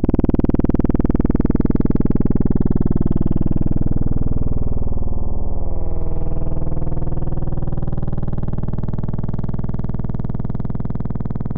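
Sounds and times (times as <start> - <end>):
synthesized flyover: 0.2 - 11.4.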